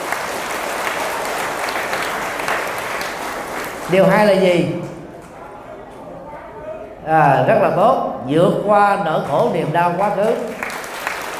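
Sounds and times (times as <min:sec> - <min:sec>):
big round of audience applause: 0:00.0 - 0:04.4, 0:10.2 - 0:11.3
speech: 0:03.9 - 0:04.8, 0:07.1 - 0:10.6.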